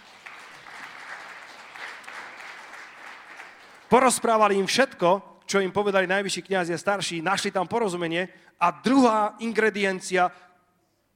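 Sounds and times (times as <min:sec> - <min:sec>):
audience applause: 0:00.0 - 0:04.1
speech: 0:03.9 - 0:10.5.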